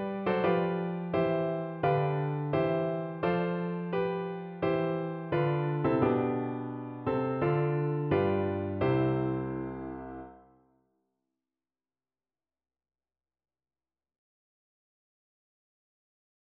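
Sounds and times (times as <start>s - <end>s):
piano playing: 0.0s - 10.4s.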